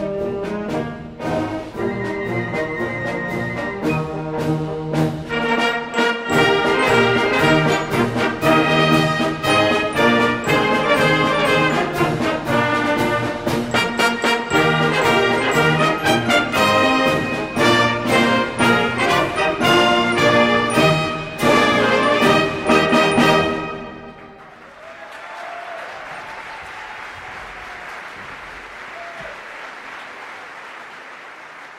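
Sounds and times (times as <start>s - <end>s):
march music: 0.0s - 24.8s.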